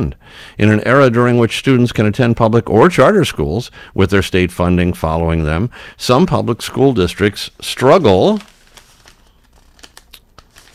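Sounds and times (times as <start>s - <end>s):
speech: 0.0s - 8.5s
paper pages turning: 6.8s - 10.7s.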